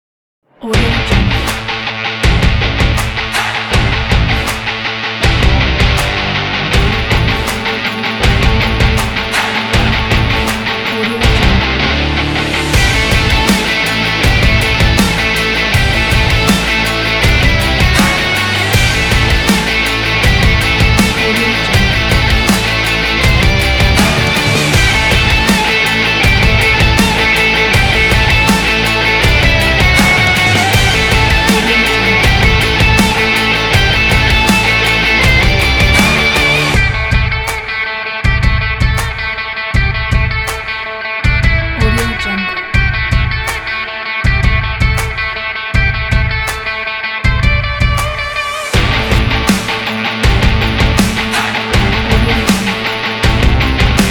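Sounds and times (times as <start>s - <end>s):
driving sport rock intro music: 0.6s - 54.0s.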